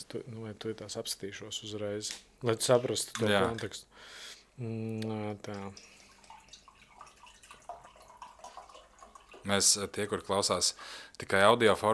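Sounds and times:
speech: 0:00.0 - 0:06.0, 0:09.4 - 0:11.9
water poured into a glass: 0:05.6 - 0:10.3.

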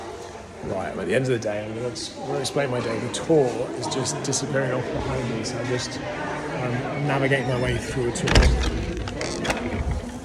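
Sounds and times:
speech: 0:00.6 - 0:09.0
door latch and handle being opened: 0:07.6 - 0:10.2.

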